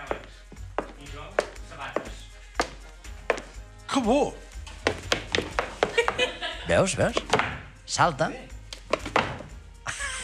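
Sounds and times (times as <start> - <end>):
hard footsteps: 0.0 - 3.7, 4.6 - 7.8, 8.7 - 9.6
speech: 4.0 - 4.4, 6.7 - 8.5
laughter: 5.8 - 7.0, 9.8 - 10.2.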